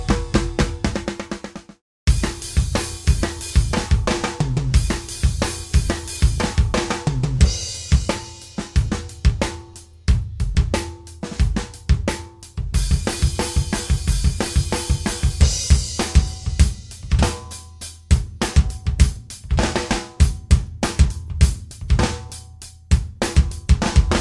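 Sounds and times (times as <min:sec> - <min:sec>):
ultra metal drums: 0:00.0 - 0:24.1.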